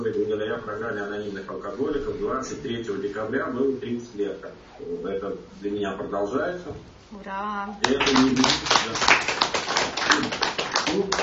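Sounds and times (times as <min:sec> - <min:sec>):
speech: 0:00.0 - 0:09.4, 0:10.2 - 0:11.2
applause: 0:07.8 - 0:11.2.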